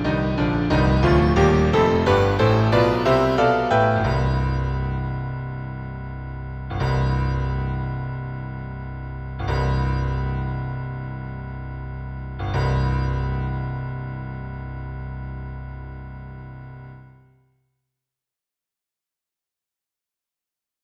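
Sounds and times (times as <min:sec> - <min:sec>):
bells ringing: 0:00.7 - 0:15.1.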